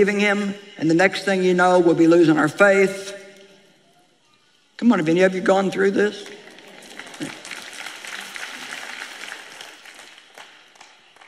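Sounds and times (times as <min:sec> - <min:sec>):
speech: 0:00.0 - 0:03.2, 0:04.8 - 0:06.4
quiet crowd clapping: 0:06.2 - 0:11.2.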